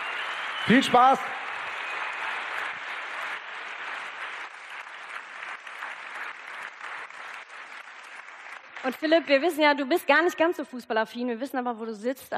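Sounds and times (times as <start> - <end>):
audience applause: 0.0 - 9.5
speech: 0.7 - 1.4, 8.8 - 12.3.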